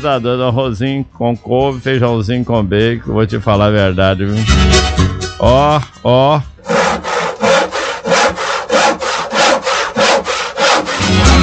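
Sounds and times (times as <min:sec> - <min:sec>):
speech: 0:00.0 - 0:06.8
hand saw cutting through wood: 0:06.6 - 0:11.4.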